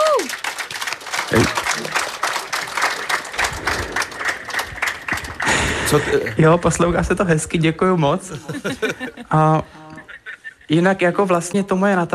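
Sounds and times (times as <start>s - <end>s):
audience applauding at outdoor colonnade: 0.0s - 6.4s
speech: 1.3s - 2.0s, 5.9s - 9.8s, 10.7s - 12.1s
laughter: 4.4s - 6.4s, 8.2s - 11.0s.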